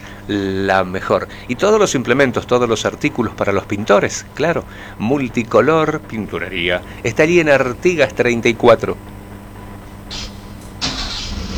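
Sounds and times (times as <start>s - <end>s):
speech: 0.3s - 9.2s
car engine starting: 10.1s - 11.5s.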